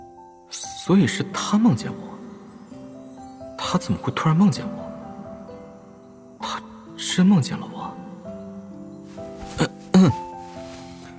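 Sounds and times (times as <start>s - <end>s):
speech: 0.5s - 2.1s, 3.7s - 4.9s, 7.2s - 7.8s
man coughing: 9.5s - 10.4s.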